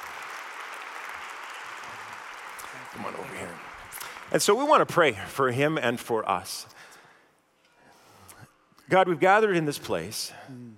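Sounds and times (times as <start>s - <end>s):
Center Street Church congregation clapping to welcome a speaker: 0.0s - 5.0s
speech: 2.9s - 6.9s, 8.9s - 10.7s.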